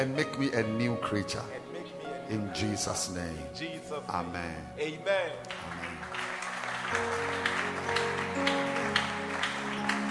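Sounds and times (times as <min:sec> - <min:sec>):
speech: 0:00.0 - 0:01.6, 0:02.3 - 0:06.1, 0:06.9 - 0:08.5
audience clapping hands: 0:05.4 - 0:10.0.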